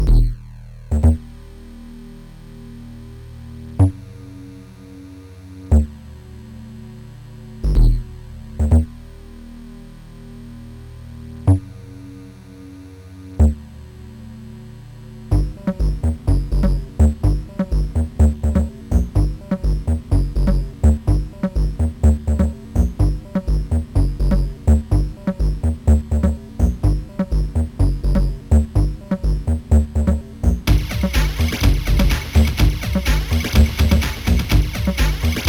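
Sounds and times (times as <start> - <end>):
ambient hip-hop music: 0.0 - 35.4.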